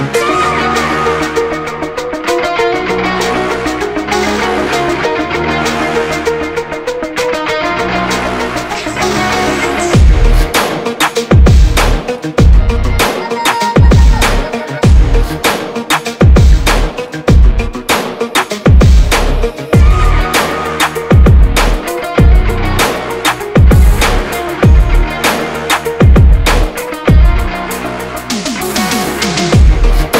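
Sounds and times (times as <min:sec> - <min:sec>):
hard uplifting motivational rap beat: 0:00.1 - 0:30.1.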